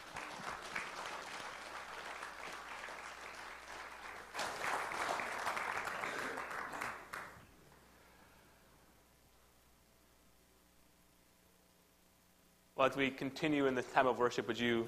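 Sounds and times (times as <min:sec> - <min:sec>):
round of applause: 0:00.0 - 0:07.5
speech: 0:12.8 - 0:14.8.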